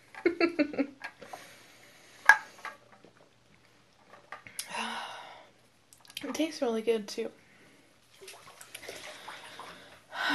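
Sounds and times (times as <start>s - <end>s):
speech: 0.2s - 0.8s, 6.5s - 7.4s
water dripping: 5.9s - 6.6s, 8.0s - 10.3s
bath water sloshing and splashing: 8.0s - 10.1s.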